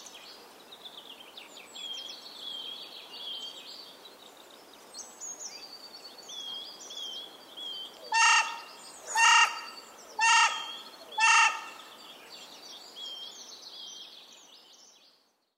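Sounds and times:
carrion crow giving harsh hoarse caws: 0:08.1 - 0:11.9.

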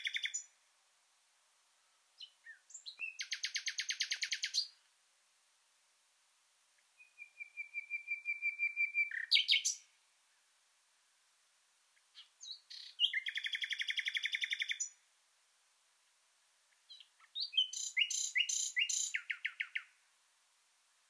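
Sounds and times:
common nightingale singing: 0:00.0 - 0:00.6, 0:02.2 - 0:04.9, 0:06.8 - 0:10.0, 0:12.0 - 0:15.1, 0:16.7 - 0:20.0.

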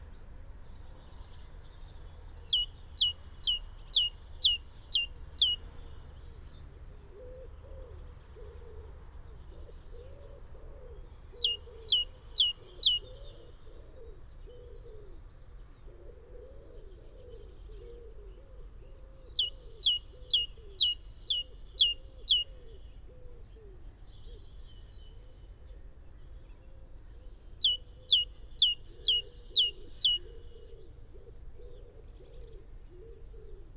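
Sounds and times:
great tit singing: 0:02.1 - 0:05.6, 0:11.1 - 0:13.4, 0:19.1 - 0:22.6, 0:26.9 - 0:30.7.

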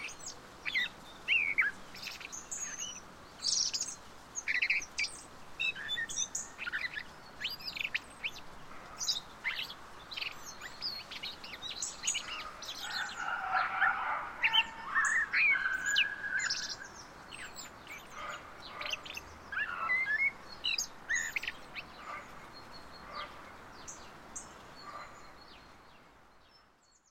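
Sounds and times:
common blackbird whistled song: 0:00.0 - 0:08.4, 0:09.0 - 0:21.9.

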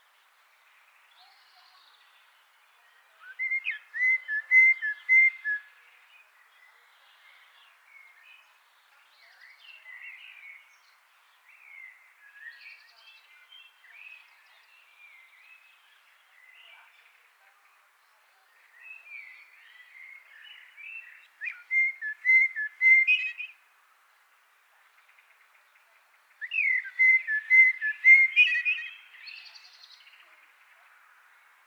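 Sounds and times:
Eurasian blackbird fluty song: 0:00.1 - 0:23.6, 0:24.7 - 0:31.6.

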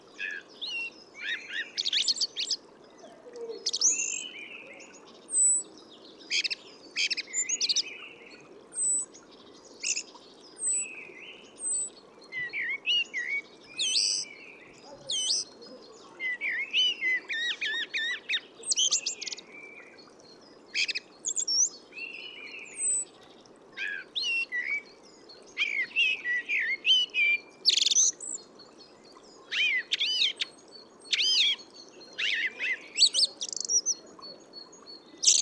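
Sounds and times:
Eurasian blackbird song: 0:00.0 - 0:35.4.

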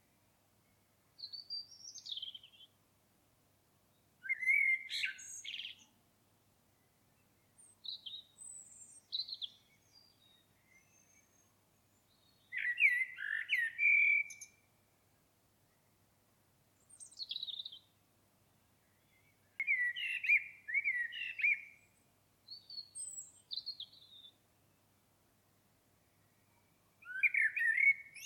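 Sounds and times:
Common blackbird song: 0:00.0 - 0:02.8, 0:03.9 - 0:06.0, 0:06.7 - 0:16.0, 0:16.8 - 0:18.0, 0:18.6 - 0:24.8, 0:26.0 - 0:28.2.

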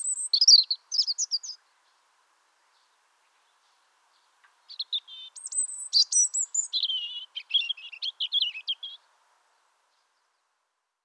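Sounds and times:
European robin singing: 0:00.0 - 0:02.0, 0:02.7 - 0:09.1.

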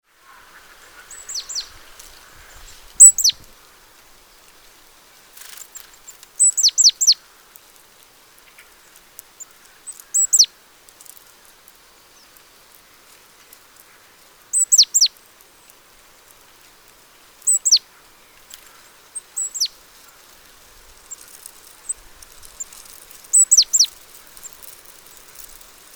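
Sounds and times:
faint hiss: 0:00.0 - 0:25.9
great tit calling: 0:00.5 - 0:03.5, 0:06.0 - 0:07.2, 0:09.4 - 0:10.5, 0:14.0 - 0:15.2, 0:17.4 - 0:20.3, 0:21.0 - 0:25.3.

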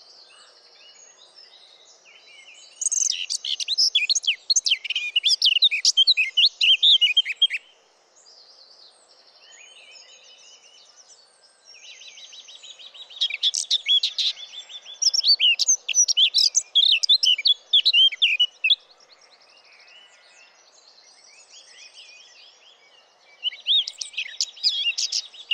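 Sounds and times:
Sylvia atricapilla Eurasian blackcap singing: 0:02.7 - 0:07.7, 0:12.0 - 0:18.8, 0:23.4 - 0:25.5.

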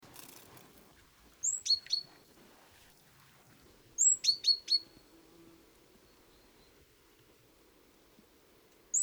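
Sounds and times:
rustling: 0:00.0 - 0:06.8
great tit calling: 0:00.1 - 0:02.9, 0:03.7 - 0:05.1.

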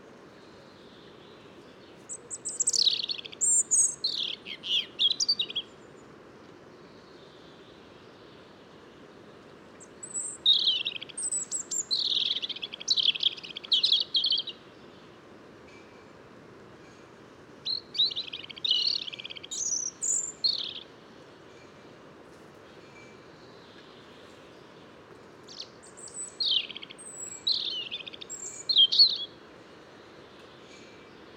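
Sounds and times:
European robin singing: 0:00.8 - 0:06.0, 0:09.8 - 0:14.9, 0:17.6 - 0:20.9, 0:25.4 - 0:29.4.

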